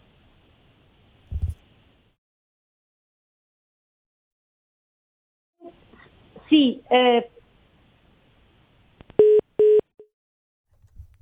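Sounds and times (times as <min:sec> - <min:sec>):
speech: 0:06.5 - 0:07.4
electronic telephone dialing tones on the line: 0:09.2 - 0:09.9.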